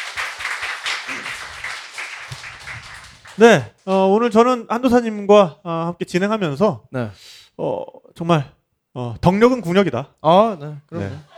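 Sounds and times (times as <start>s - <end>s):
audience applause: 0.0s - 3.6s, 11.0s - 11.3s
laughter: 1.0s - 1.7s, 10.6s - 11.3s
speech: 3.4s - 11.3s.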